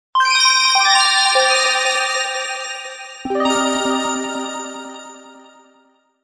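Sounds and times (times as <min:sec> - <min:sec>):
bell: 0:00.3 - 0:06.0.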